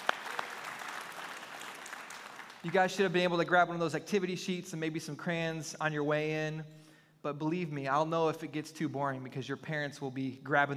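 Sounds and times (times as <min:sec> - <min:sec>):
church congregation clapping: 0:00.0 - 0:03.3
speech: 0:02.6 - 0:10.7.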